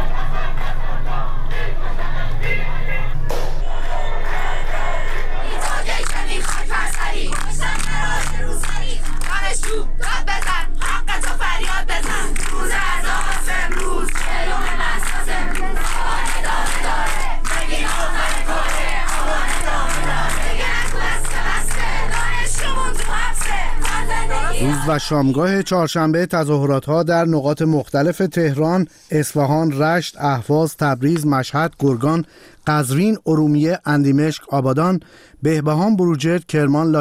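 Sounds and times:
protest crowd chanting slogans: 0.0s - 25.4s
protest crowd clapping: 3.3s - 25.0s
speech: 24.9s - 36.9s.

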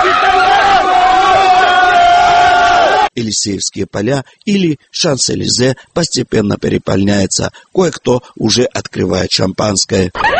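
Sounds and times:
crowd celebrating on the Champs-Élysées cheering and shouting: 0.0s - 3.1s
speech: 3.2s - 10.3s.

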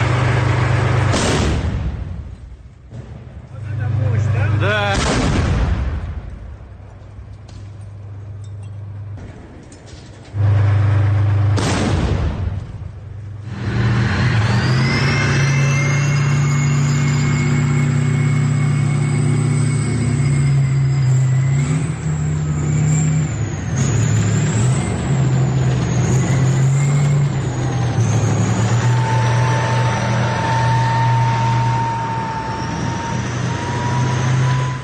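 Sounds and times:
tank engine roaring with a rising mechanical whine as it changes position: 0.0s - 34.8s
tank firing at the intersection of Svobody and Sadovaya streets in Bakhmut: 0.4s - 3.4s, 4.8s - 6.6s, 11.2s - 13.1s.

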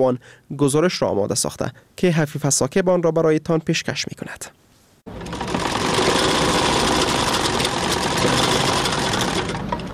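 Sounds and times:
speech: 0.0s - 5.2s
sewing machine running in tailor shop: 5.1s - 9.9s.

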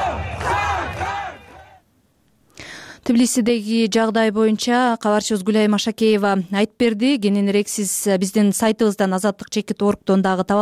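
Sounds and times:
crowd at a political rally in Tbilisi shouting and cheering: 0.0s - 1.8s
speech: 3.1s - 10.5s.

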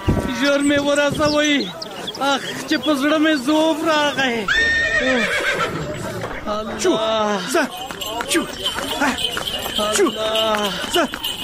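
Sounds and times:
hooves of a horse pulling a horse-drawn carriage: 0.0s - 6.4s, 7.4s - 11.4s
people talking loudly: 0.0s - 11.4s
speech: 0.4s - 5.8s, 6.5s - 11.3s
horse neighing: 4.4s - 6.1s.

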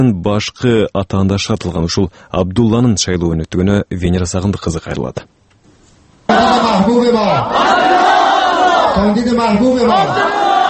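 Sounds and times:
speech: 0.0s - 5.4s, 6.3s - 8.0s, 9.0s - 10.4s
crowd cheering and chanting for Abdullah Abdullah in the Panjshir valley: 6.3s - 10.6s.

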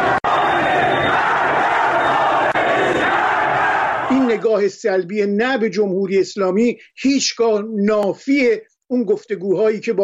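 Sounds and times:
large protest crowd chanting slogans: 0.0s - 4.4s
speech: 4.6s - 10.0s.

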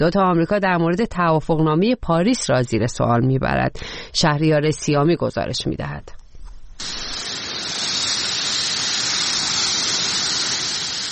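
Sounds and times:
speech: 0.0s - 6.2s
dry grass burning in wildfire: 6.8s - 11.1s.

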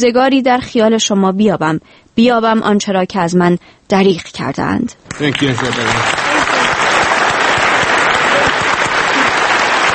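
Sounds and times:
speech: 0.0s - 6.2s
festival audience applauding: 5.1s - 9.9s.

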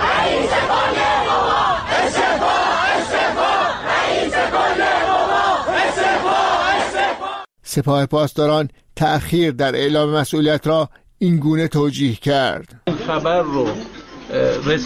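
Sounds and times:
large protest crowd chanting in unison: 0.0s - 7.5s
speech: 7.7s - 14.8s.

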